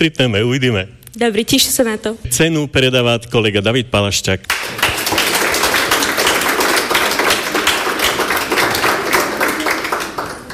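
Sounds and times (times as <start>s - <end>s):
speech: 0.0s - 4.9s
audience applause at a prize presentation ceremony: 4.5s - 10.5s.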